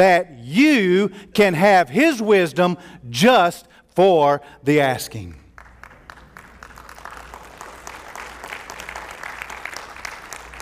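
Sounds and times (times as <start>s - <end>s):
speech: 0.0s - 5.4s
audience applause: 5.6s - 10.6s.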